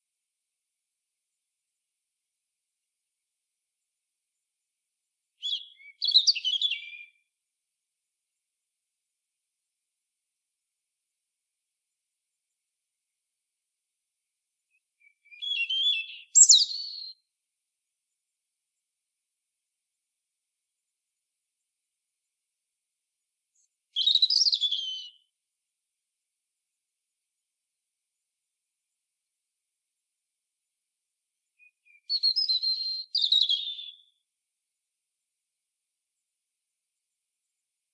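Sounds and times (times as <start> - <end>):
European robin song: 5.4 - 7.3, 14.7 - 17.2, 23.5 - 25.3, 31.6 - 34.2.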